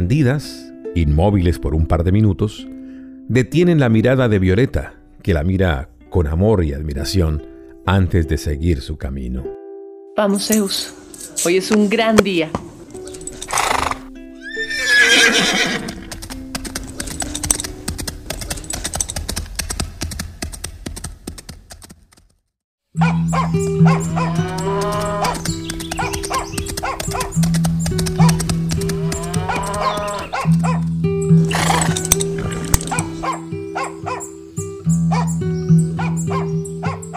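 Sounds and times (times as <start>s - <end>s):
speech: 0.0s - 2.7s, 3.3s - 9.6s, 10.2s - 12.7s
horse galloping with rapid hoofbeats: 13.0s - 34.2s
horse neighing with loud whinnies: 13.2s - 16.2s, 23.0s - 27.4s, 28.0s - 30.8s, 31.4s - 33.4s
dog barking: 23.0s - 24.4s, 26.0s - 27.4s, 29.5s - 30.9s, 32.8s - 34.3s, 35.1s - 35.4s, 36.0s - 37.1s.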